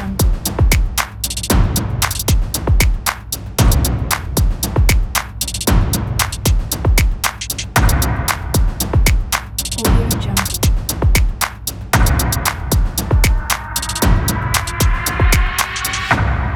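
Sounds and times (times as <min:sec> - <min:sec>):
epic logo stomps: 0:00.2 - 0:09.5, 0:10.4 - 0:16.4
epic logo claps: 0:00.7 - 0:03.4, 0:04.1 - 0:09.6, 0:10.4 - 0:12.7.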